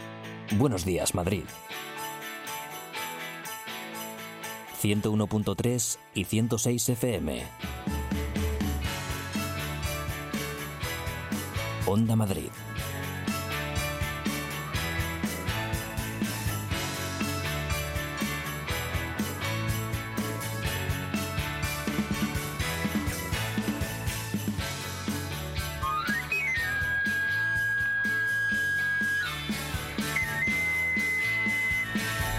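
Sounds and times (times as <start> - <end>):
music: 0.0 - 32.3
speech: 0.5 - 2.0, 4.8 - 8.2, 11.9 - 12.6
chiflo, a shrill panpipe-like whistle: 25.6 - 32.3.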